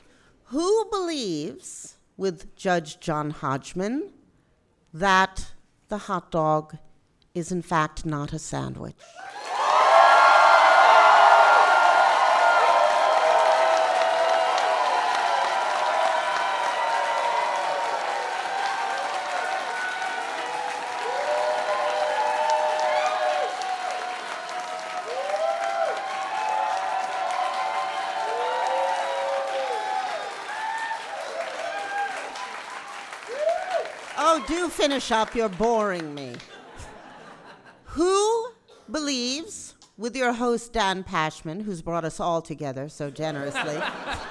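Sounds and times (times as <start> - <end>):
speech: 0.5 - 4.2, 4.9 - 9.4, 34.8 - 36.6, 38.0 - 38.3, 38.9 - 44.2
cheers and whoops: 9.0 - 34.6
audience applause: 9.1 - 37.1
laughter: 36.4 - 37.9, 43.4 - 44.2.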